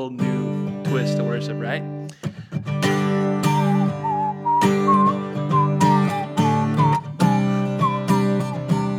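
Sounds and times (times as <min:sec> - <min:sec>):
speech: 0:00.0 - 0:03.2
whistling a worship song melody: 0:03.4 - 0:08.9.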